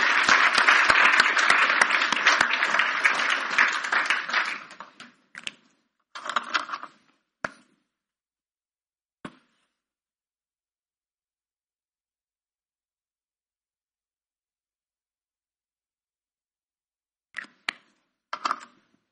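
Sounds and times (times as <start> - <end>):
audience applause: 0.0 - 5.0.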